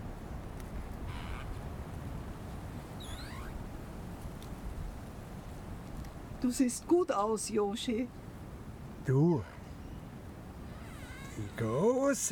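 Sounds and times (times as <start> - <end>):
leaves rustling: 0.0 - 9.0, 10.1 - 12.2
speech: 6.4 - 8.2, 9.0 - 9.6, 11.5 - 12.2.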